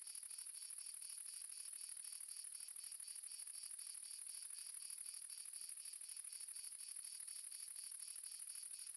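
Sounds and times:
multiple crickets chirping in south France: 0.1s - 8.8s.

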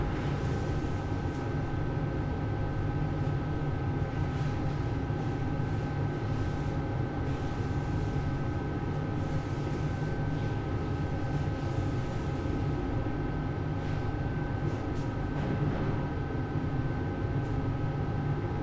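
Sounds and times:
restaurant kitchen lunch working ambience: 0.0s - 18.6s.

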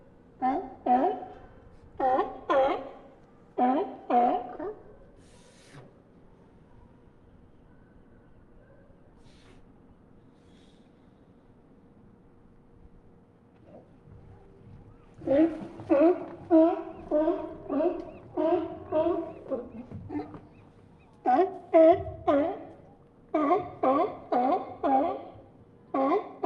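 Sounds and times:
group of sea lions barking: 0.4s - 4.8s, 15.1s - 26.4s.

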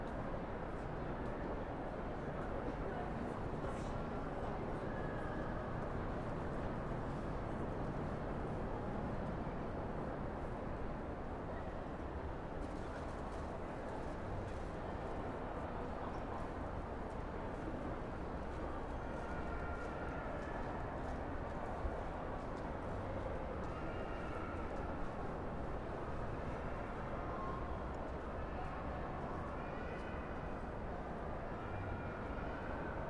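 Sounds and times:
crowd in resonant shopping mall hall: 0.0s - 33.0s.

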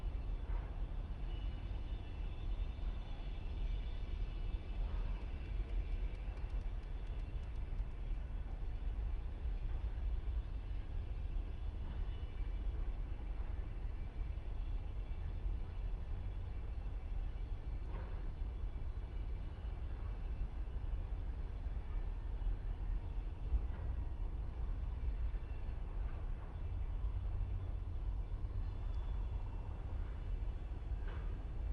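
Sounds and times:
train passing by a harbor mole: 0.0s - 31.7s.

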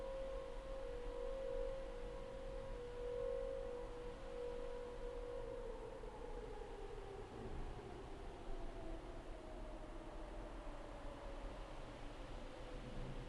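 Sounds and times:
fire department siren: 0.0s - 13.1s.

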